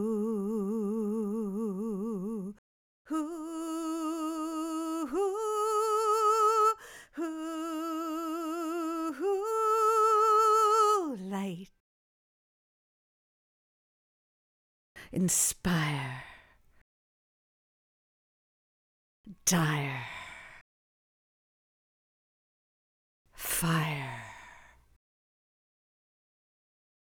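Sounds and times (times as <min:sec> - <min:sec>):
vocal stems: 0:00.0 - 0:11.8, 0:15.0 - 0:16.8, 0:19.3 - 0:20.6, 0:23.4 - 0:25.0.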